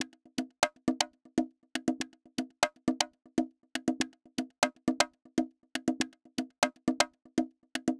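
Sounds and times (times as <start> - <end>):
lounge house conga loop: 0.0 - 7.9.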